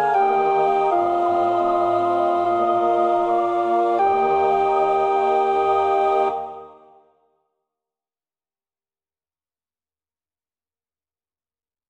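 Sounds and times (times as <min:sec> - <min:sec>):
alto choir part practice singing: 0:00.0 - 0:07.1.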